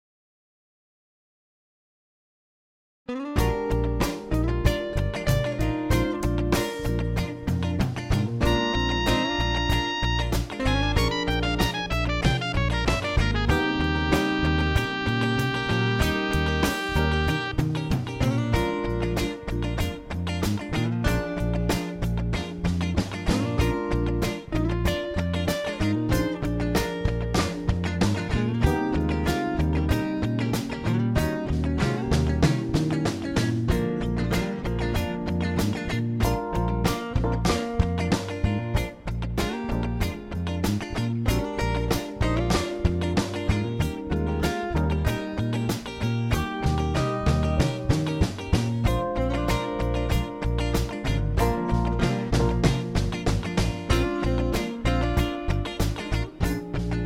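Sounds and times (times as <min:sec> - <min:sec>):
diminished dominant pattern: 0:03.2 - 0:57.0.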